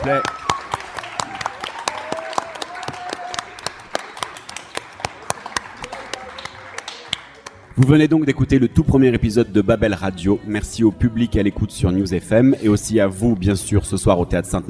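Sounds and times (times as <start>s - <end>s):
speech: 0.0s - 0.4s, 7.8s - 14.6s
audience applause: 0.0s - 7.8s.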